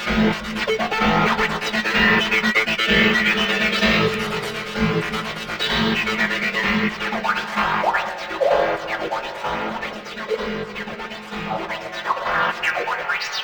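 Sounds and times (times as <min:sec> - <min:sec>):
spastic EDM synth arpeggio: 0:00.1 - 0:13.4.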